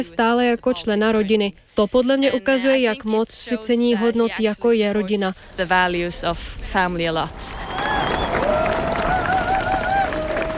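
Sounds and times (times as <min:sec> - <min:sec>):
speech: 0:00.0 - 0:08.2
crowd applause: 0:07.3 - 0:10.5.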